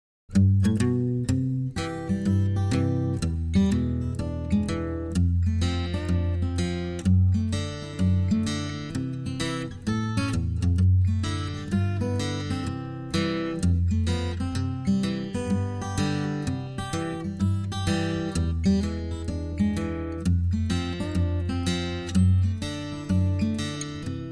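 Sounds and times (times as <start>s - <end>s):
acoustic guitar: 0.3s - 24.2s.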